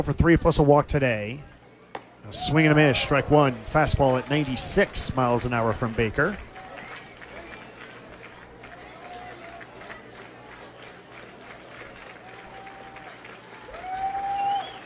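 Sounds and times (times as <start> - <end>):
speech: 0.0 - 1.5, 2.3 - 6.5
stadium crowd clapping in unison: 2.9 - 14.8.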